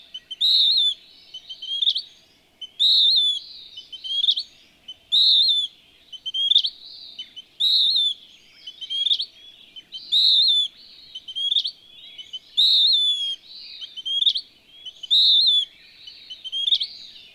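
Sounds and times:
western wood-pewee whistling: 0.1 - 2.0, 2.6 - 4.4, 5.1 - 6.7, 7.6 - 8.2, 10.0 - 16.9.

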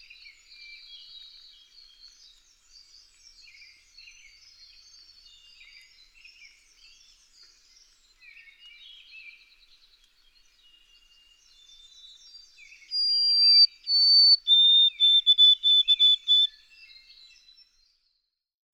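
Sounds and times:
White-throated Sparrow singing: 12.6 - 17.2.

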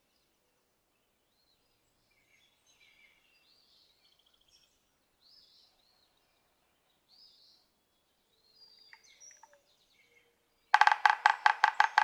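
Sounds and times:
yellow-bellied sapsucker nasal mewing notes: 10.8 - 12.0.

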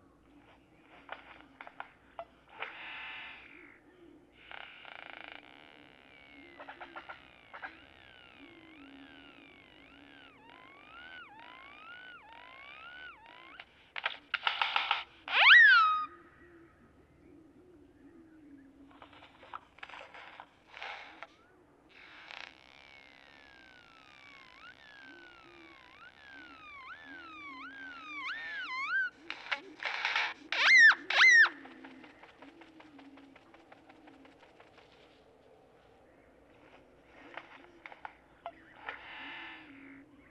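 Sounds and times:
great-tailed grackle song: 5.6 - 16.2, 21.0 - 34.6.

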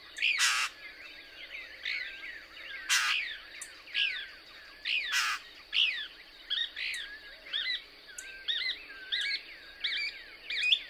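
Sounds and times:
other birds calling faintly: 0.0 - 0.8, 1.8 - 6.0
Couch's Kingbird twittering song: 0.0 - 10.8.

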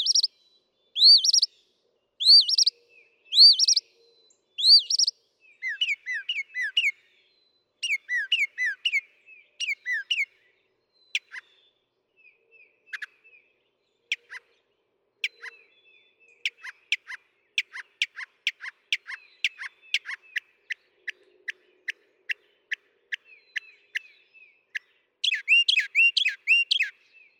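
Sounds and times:
northern mockingbird singing: 0.0 - 0.3, 1.0 - 1.5, 2.2 - 7.0, 7.8 - 10.4, 11.1 - 11.5, 15.2 - 27.3.

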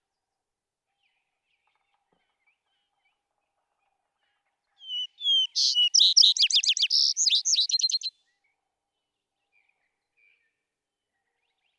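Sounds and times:
vesper sparrow song: 4.8 - 8.1.

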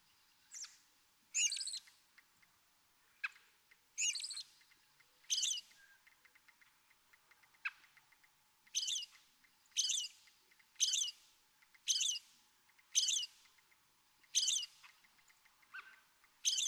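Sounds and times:
American robin singing caroling phrases: 0.5 - 1.9, 4.0 - 4.5, 5.2 - 6.1, 8.6 - 13.4, 14.2 - 16.6.

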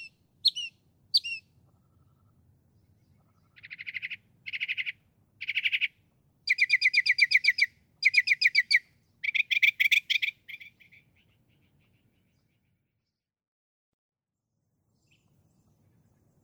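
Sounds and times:
northern mockingbird singing: 0.0 - 2.3, 2.9 - 12.6.

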